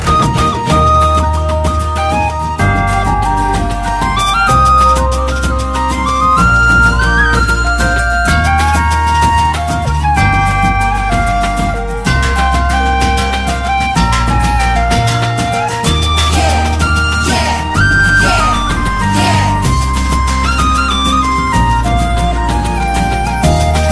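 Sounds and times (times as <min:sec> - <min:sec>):
Telugu background music ringtone: 0:00.0 - 0:23.9.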